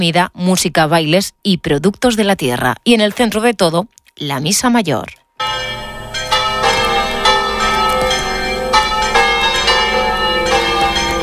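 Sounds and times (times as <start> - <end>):
speech: 0.0 - 5.8
sanctuary church bells ringing: 5.4 - 11.2.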